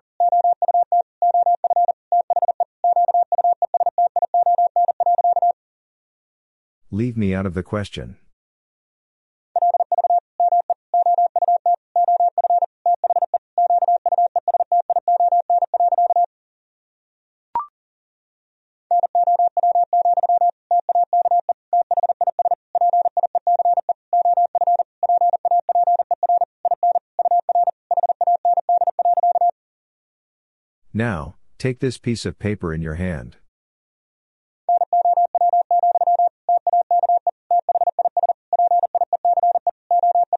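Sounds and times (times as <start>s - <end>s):
fast Morse code tones at 40 words per minute: 0.2s - 5.6s, 9.6s - 16.3s, 18.9s - 29.5s, 34.7s - 40.3s
speech: 6.9s - 8.2s, 31.0s - 33.4s.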